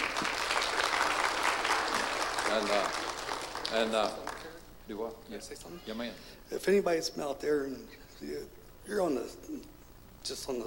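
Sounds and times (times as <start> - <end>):
crowd clapping: 0.0 - 4.7
speech: 2.5 - 3.1, 3.7 - 4.2, 4.9 - 10.6.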